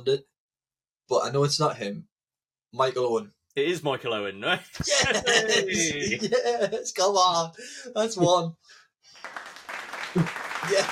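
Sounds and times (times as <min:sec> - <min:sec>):
speech: 0:00.0 - 0:00.3, 0:01.1 - 0:02.1, 0:02.7 - 0:09.5, 0:10.1 - 0:10.9
laughter: 0:04.8 - 0:07.0, 0:09.9 - 0:10.9
clapping: 0:09.2 - 0:10.9.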